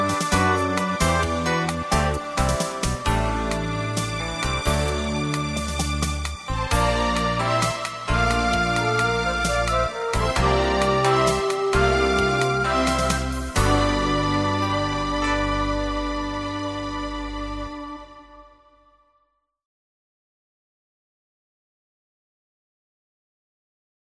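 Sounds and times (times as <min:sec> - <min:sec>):
easy listening and classical music: 0:00.0 - 0:19.0.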